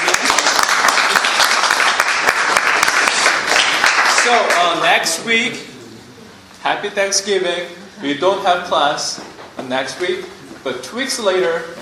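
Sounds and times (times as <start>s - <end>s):
audience applause: 0.0s - 4.8s
speech: 4.3s - 5.8s, 6.6s - 11.8s.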